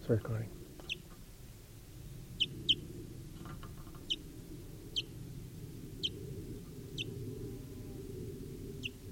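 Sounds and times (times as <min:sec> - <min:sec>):
low rumble: 0:00.0 - 0:09.0
fledgling wild bird chirping: 0:02.4 - 0:02.8, 0:04.0 - 0:04.3, 0:04.9 - 0:05.1, 0:08.8 - 0:09.0.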